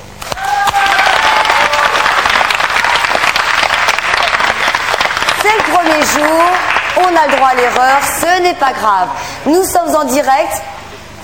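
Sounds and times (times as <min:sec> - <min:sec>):
whistles and cheers: 0:00.2 - 0:02.4
studio audience applause: 0:00.2 - 0:08.4
speech: 0:05.9 - 0:10.7.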